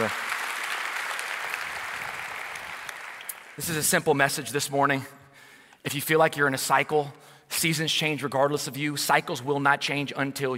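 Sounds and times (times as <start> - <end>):
audience clapping: 0.0 - 3.9
speech: 3.6 - 5.2, 5.8 - 10.5.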